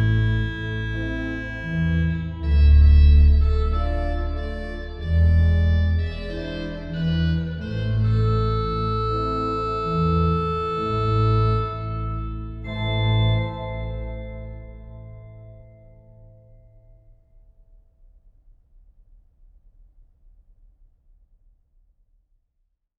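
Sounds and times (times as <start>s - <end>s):
organ playing a habanera in A minor: 0.0s - 15.7s.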